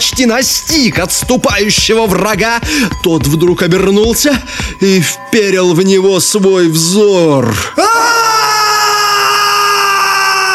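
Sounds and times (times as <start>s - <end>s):
speech: 0.2s - 8.3s
piercing scream: 7.7s - 10.5s.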